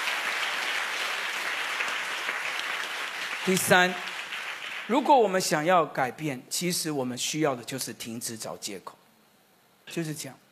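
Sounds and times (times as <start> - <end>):
audience clapping: 0.0 - 5.5
speech: 3.4 - 4.1, 4.9 - 9.0, 9.9 - 10.4.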